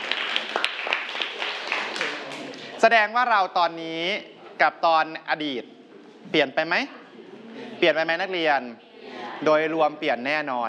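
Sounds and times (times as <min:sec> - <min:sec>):
students clapping in a classroom: 0:00.0 - 0:02.8
speech: 0:02.8 - 0:05.7, 0:06.3 - 0:07.0, 0:07.8 - 0:10.6.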